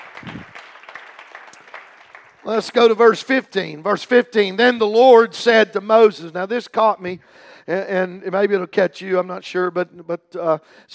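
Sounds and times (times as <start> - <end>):
audience clapping hands: 0.0 - 3.3
speech: 2.4 - 10.9.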